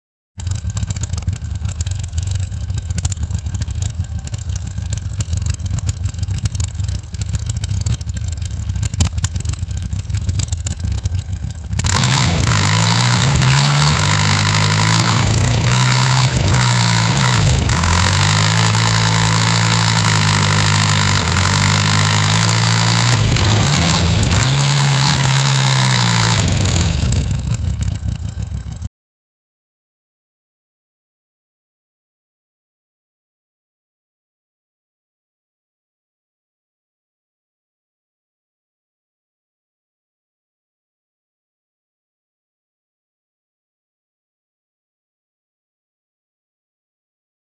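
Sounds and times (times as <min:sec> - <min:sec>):
Harley motorcycle engine: 0:00.4 - 0:28.9.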